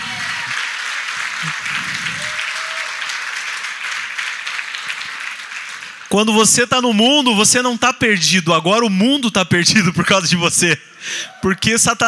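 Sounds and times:
audience applauding: 0.0 - 6.2
speech: 6.1 - 12.0.

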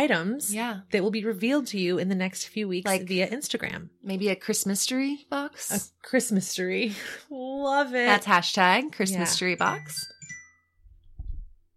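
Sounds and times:
speech: 0.0 - 10.1
phone ringing with a jingly ringtone: 9.2 - 10.8.

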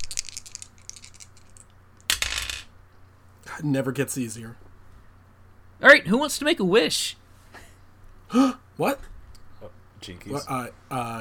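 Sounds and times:
dice being rolled: 0.0 - 2.7
speech: 3.6 - 4.6, 5.8 - 7.2, 8.3 - 11.1.

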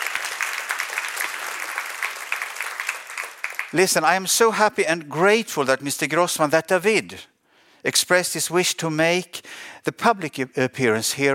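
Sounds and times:
audience applause: 0.0 - 4.3
speech: 3.7 - 11.3.

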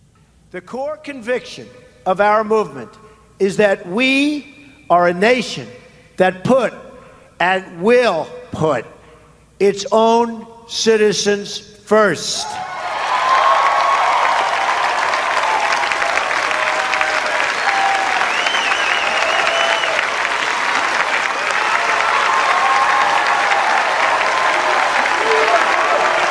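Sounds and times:
speech: 0.5 - 6.8, 7.4 - 9.0, 9.6 - 12.7
crowd cheering: 12.4 - 26.3
applause: 12.9 - 26.3.

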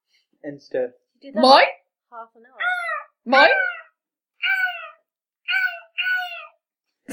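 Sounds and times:
speech: 0.4 - 3.7
voice imitating seagull calls: 2.5 - 6.6.

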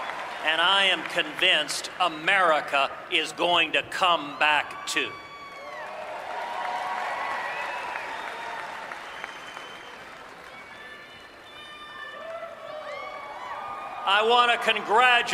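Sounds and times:
crowd cheering and clapping in played recording: 0.0 - 15.3
speech: 0.4 - 5.2, 14.1 - 15.3
whoops and shouts: 4.2 - 14.6.

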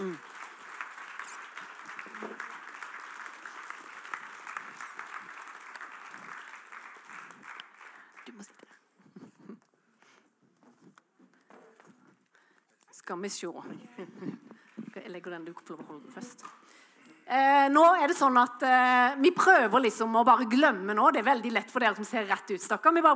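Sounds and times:
audience applause: 0.0 - 8.4
speech: 13.1 - 23.1.

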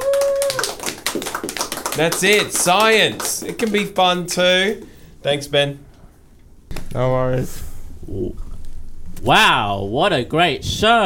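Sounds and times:
audience clapping: 0.0 - 4.8
speech: 2.0 - 5.9, 6.9 - 8.4, 9.2 - 11.0.

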